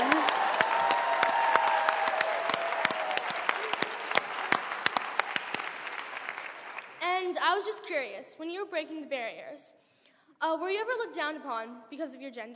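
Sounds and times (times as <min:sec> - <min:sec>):
audience applause: 0:00.0 - 0:07.0
faint cheer or whoop: 0:00.0 - 0:07.0
speech: 0:08.1 - 0:12.5.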